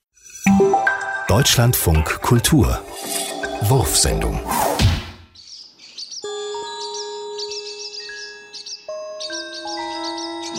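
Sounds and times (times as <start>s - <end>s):
speech: 1.3s - 4.7s
swallows chirping in flight: 5.3s - 10.5s
ringing bell-like tones: 6.2s - 10.5s.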